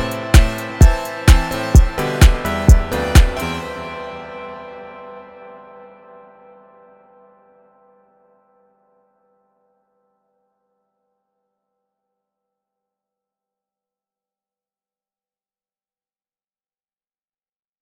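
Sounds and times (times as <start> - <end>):
EDM music: 0.0 - 5.4.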